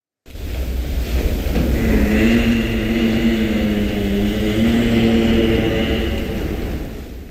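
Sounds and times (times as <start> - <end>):
giraffe humming: 1.5 - 7.2.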